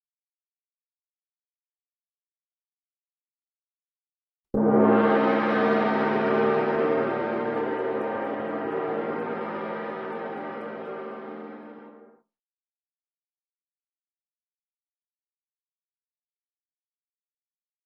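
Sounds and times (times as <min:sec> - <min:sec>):
gong: 0:04.6 - 0:12.1.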